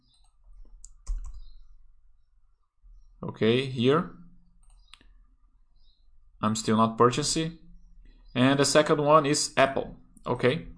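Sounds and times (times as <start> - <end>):
computer keyboard keys typing a stock ticker: 0.1 - 1.5
speech: 3.2 - 4.2, 6.4 - 7.6, 8.4 - 10.7.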